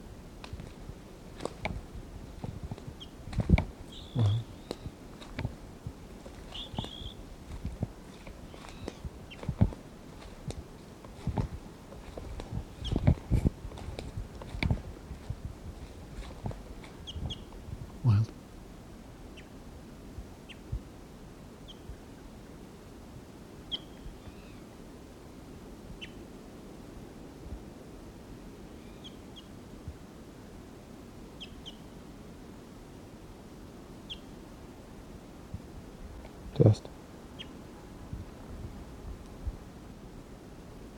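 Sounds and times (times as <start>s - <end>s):
wind-like noise: 0.0s - 40.9s
crunching steps or rustles: 0.4s - 17.6s
wild bird chirping: 2.8s - 5.4s, 6.3s - 10.4s, 12.0s - 14.0s, 16.2s - 18.2s, 23.7s - 24.7s, 28.7s - 29.5s, 31.4s - 31.8s, 34.1s - 34.3s, 37.3s - 37.6s
speech: 36.6s - 37.0s.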